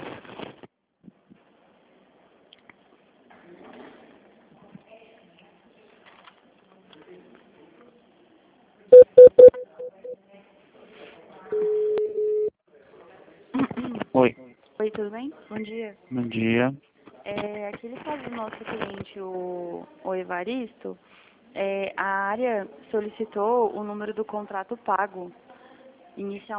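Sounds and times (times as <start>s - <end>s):
telephone keypad dialing tones as a call is transferred: 9.0s - 10.1s
longer steady telephone tone: 9.0s - 10.2s, 11.5s - 12.5s
speech: 15.0s - 25.5s, 26.2s - 26.5s.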